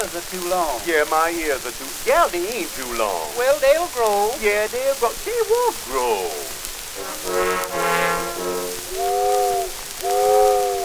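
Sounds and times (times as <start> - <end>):
faint steady hiss: 0.0 - 10.8
speech: 0.1 - 8.0
steamboat whistle blasts: 5.3 - 10.8.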